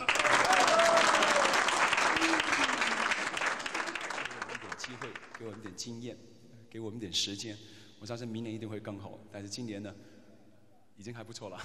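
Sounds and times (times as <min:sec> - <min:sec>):
audience applause: 0:00.0 - 0:05.6
speech: 0:05.6 - 0:10.1, 0:11.0 - 0:11.6.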